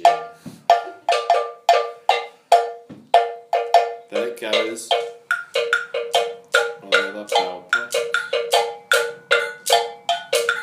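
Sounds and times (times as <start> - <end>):
metal bell struck in a repeating syncopated pattern in drumming music: 0.0 - 10.6
speech: 4.4 - 5.1.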